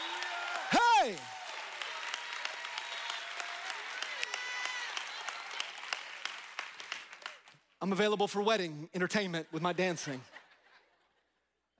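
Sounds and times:
audience clapping: 0.0 - 8.0
speech: 1.0 - 1.4, 7.8 - 10.3.

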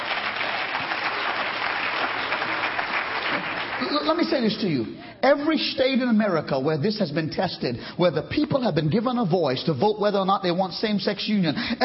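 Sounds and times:
crowd applauding: 0.0 - 4.6
speech: 3.9 - 11.8.

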